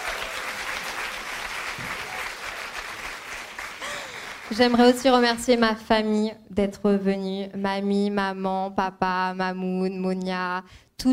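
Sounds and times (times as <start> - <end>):
live audience applause: 0.0 - 5.0
speech: 4.5 - 11.1.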